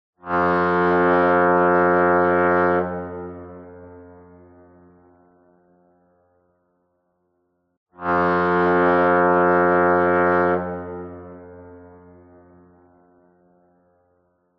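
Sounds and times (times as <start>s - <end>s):
industrial fog horn: 0.2s - 5.3s, 8.0s - 13.9s.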